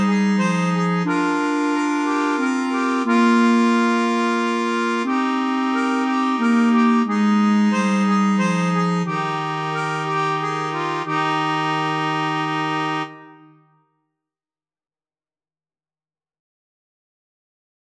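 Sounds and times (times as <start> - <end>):
medium musette music: 0.0 - 13.8.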